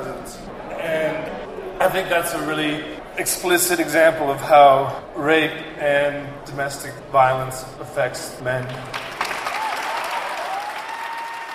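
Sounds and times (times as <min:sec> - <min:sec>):
speech: 0:01.9 - 0:09.0
crowd cheering and applauding in a state Capitol rotunda: 0:08.7 - 0:11.5.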